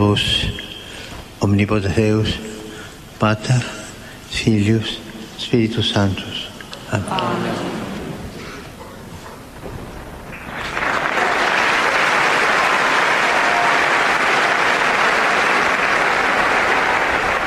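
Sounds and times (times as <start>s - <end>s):
speech: 0.0s - 0.5s, 1.4s - 2.5s, 3.2s - 7.8s
applause of pilgrims in audience hall: 10.4s - 17.4s.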